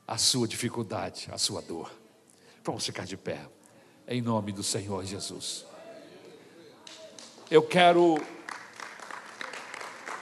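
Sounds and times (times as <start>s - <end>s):
speech: 0.1s - 2.0s, 2.6s - 5.7s, 7.5s - 8.4s
audience applause: 6.8s - 10.2s.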